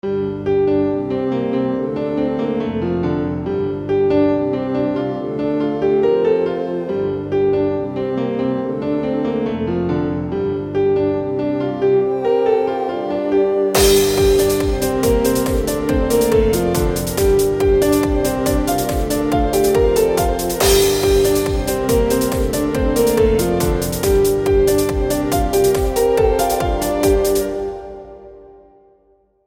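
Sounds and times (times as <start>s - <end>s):
piano: 0.0s - 29.4s.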